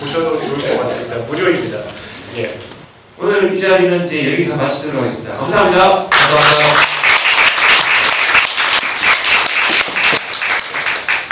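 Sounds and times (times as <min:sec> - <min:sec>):
speech: 0:00.2 - 0:06.8
audience applause after lecture: 0:06.1 - 0:11.3.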